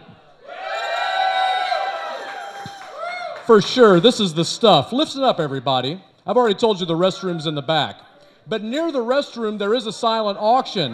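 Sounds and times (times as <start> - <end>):
rowdy crowd cheering: 0.4 - 4.2
speech: 3.5 - 10.9.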